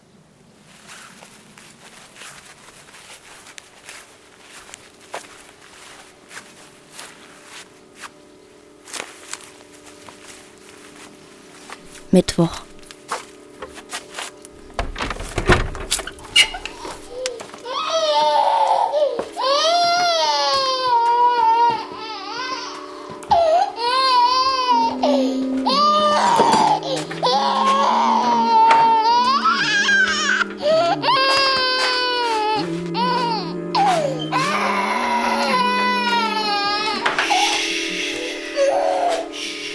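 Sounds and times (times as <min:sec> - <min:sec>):
speech: 0:12.2 - 0:12.7
baby crying because there is no more milk: 0:16.2 - 0:39.7.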